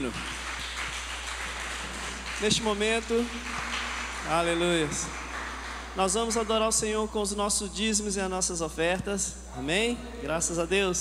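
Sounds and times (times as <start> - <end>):
speech: 0.0 - 0.4, 2.4 - 5.2, 6.0 - 10.9
crowd clapping: 0.0 - 7.1.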